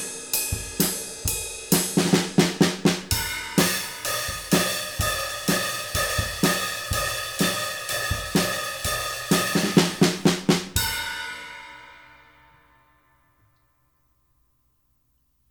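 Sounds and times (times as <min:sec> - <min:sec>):
two-piece mahogany drum kit with ride cymbal: 0:00.0 - 0:13.0.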